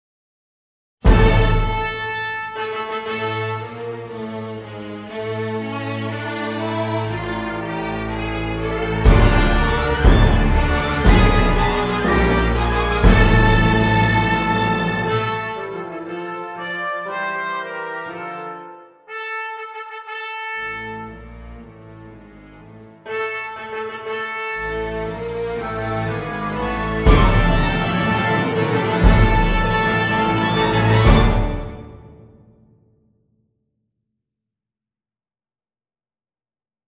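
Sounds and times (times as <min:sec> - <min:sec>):
fanfare: 0:01.0 - 0:04.1, 0:06.7 - 0:21.7, 0:23.0 - 0:32.4.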